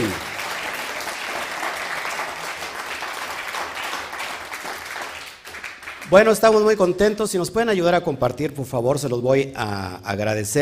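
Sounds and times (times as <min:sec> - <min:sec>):
crowd applauding: 0:00.0 - 0:07.0
speech: 0:06.1 - 0:10.6.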